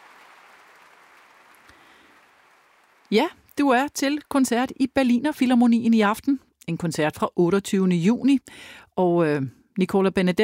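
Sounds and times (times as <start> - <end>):
concert hall audience applause in the Berliner Philharmonie: 0.0 - 3.1
speech: 3.1 - 10.4.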